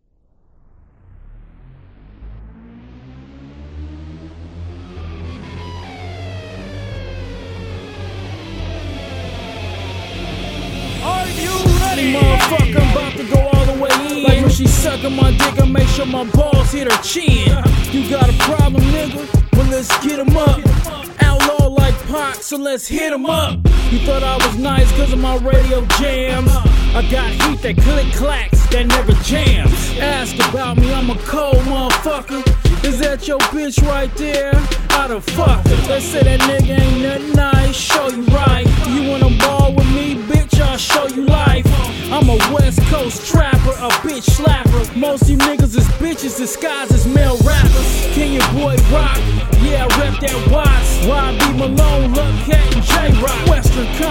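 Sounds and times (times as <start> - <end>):
freestyle rapping: 10.9 - 54.1.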